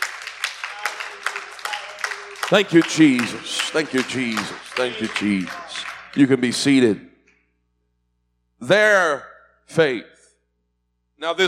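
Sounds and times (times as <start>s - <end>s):
audience clapping in a steady rhythm: 0.0s - 7.0s
speech: 2.5s - 7.1s, 8.6s - 10.1s, 11.2s - 11.4s.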